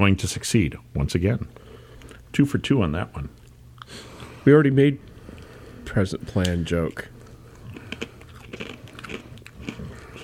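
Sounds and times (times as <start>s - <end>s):
speech: 0.0s - 1.7s, 2.3s - 5.1s, 5.9s - 7.2s
person crunching and chewing a fortune cookie: 6.9s - 10.2s.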